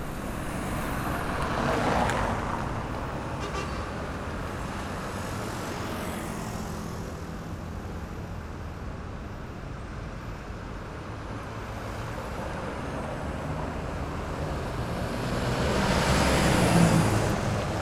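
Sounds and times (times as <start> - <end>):
street ambience: 0.0 - 17.8.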